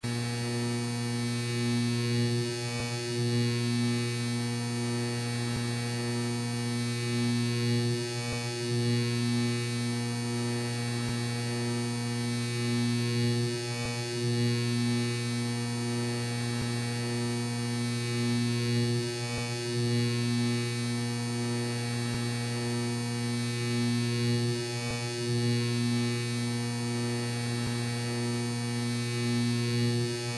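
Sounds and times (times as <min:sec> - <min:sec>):
electricity buzzing: 0:00.0 - 0:30.3.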